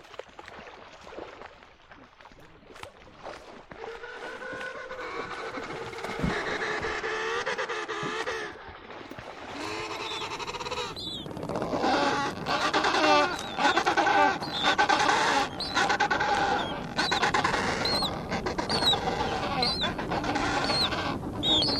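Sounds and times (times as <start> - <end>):
flock of penguins calling: 4.1 - 8.5, 9.5 - 21.7.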